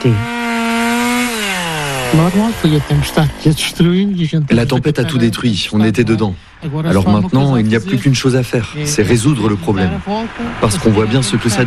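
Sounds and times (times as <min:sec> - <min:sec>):
speech: 0:00.0 - 0:00.3, 0:02.1 - 0:11.6
chainsaw cutting storm-felled trees: 0:00.0 - 0:03.8.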